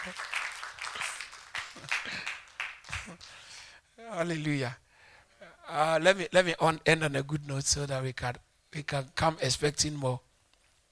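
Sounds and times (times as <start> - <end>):
speech: 0.0 - 0.3, 2.0 - 2.4, 4.0 - 4.8, 5.7 - 10.3
crowd clapping: 0.0 - 3.5.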